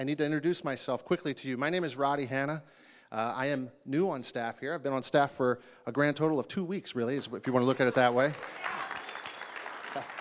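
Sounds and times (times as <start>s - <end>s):
speech: 0.0s - 9.0s
audience round of applause: 7.6s - 10.1s.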